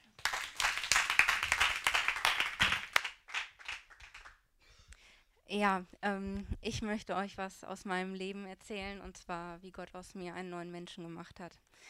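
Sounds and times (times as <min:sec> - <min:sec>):
audience applause: 0:00.0 - 0:04.4
speech: 0:05.5 - 0:11.7.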